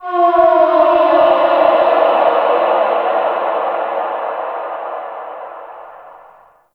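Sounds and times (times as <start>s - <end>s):
landscape ambient texture: 0.0s - 6.6s.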